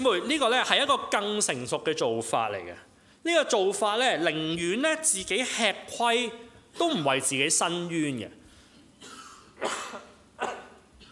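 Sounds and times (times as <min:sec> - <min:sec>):
speech: 0:00.0 - 0:08.4, 0:09.0 - 0:10.6
slightly unwell preacher coughing: 0:09.0 - 0:11.1.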